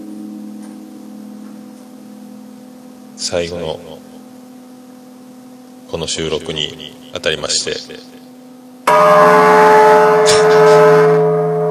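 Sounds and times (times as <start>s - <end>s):
New Year's Eve temple bell ringing: 0.0s - 3.6s, 8.9s - 11.6s
speech: 3.2s - 4.1s, 5.9s - 8.2s, 9.0s - 9.4s.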